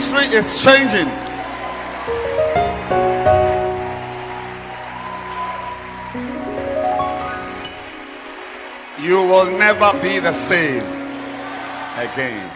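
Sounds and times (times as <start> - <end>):
audience clapping hands loudly: 0.0 - 12.5
speech: 0.2 - 1.2, 9.0 - 11.0, 12.0 - 12.5.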